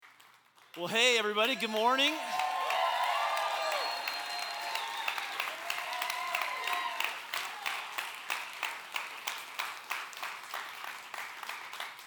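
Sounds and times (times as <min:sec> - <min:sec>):
audience applause: 0:00.6 - 0:12.0
speech: 0:00.8 - 0:02.4
cheering and high whoops: 0:01.4 - 0:08.1.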